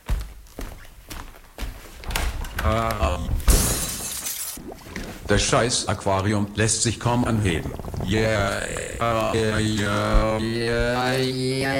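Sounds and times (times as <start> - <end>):
speech: 2.6 - 3.5, 4.9 - 11.7
window glass shattering as an armchair is thrown through: 3.5 - 4.6
dull thumps and knocks: 7.5 - 11.1.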